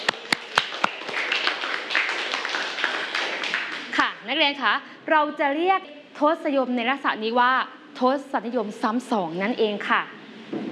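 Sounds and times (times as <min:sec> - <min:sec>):
students clapping hands: 0:00.0 - 0:04.2
speech: 0:04.3 - 0:10.2.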